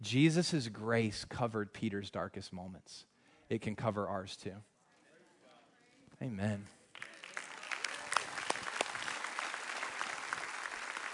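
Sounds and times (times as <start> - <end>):
speech: 0.0 - 4.7, 6.2 - 7.1
audience applause: 6.9 - 11.1.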